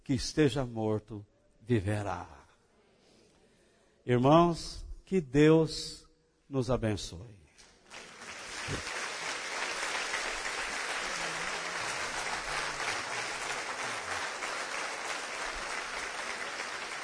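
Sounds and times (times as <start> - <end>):
speech: 0.1 - 2.4, 4.0 - 8.1, 8.7 - 9.0
large crowd applauding: 7.8 - 17.0.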